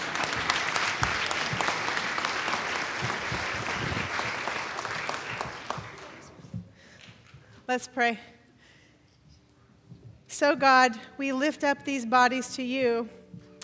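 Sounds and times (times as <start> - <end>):
crowd clapping for children: 0.0 - 7.4
speech: 7.7 - 8.3, 10.4 - 13.2.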